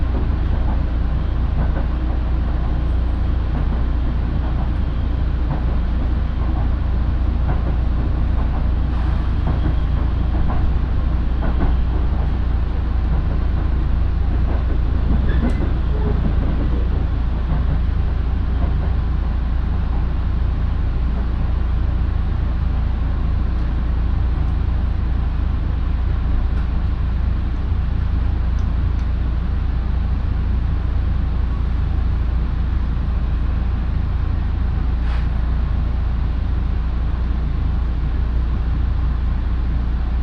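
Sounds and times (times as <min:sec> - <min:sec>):
local train on the Minobu Line: 0:00.0 - 0:40.2.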